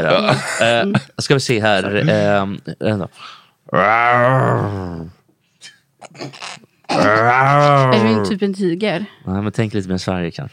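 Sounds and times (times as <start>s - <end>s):
speech: 0.0s - 5.2s, 6.0s - 10.5s
person imitating a bear's growl: 3.7s - 5.2s, 6.2s - 8.4s.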